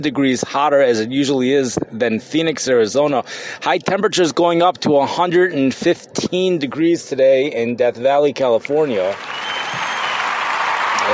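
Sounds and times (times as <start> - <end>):
speech: 0.0 - 9.8
crowd applause: 8.9 - 11.1.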